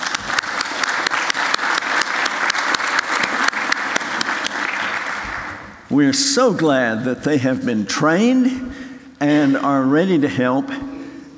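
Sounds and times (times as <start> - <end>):
audience applause: 0.0 - 5.9
speech: 6.0 - 10.9.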